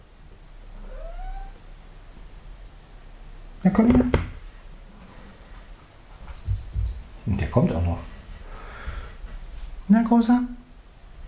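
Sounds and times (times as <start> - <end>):
tomcat meowing: 0.8 - 1.6
speech: 3.6 - 4.2, 7.6 - 8.0, 10.0 - 10.5.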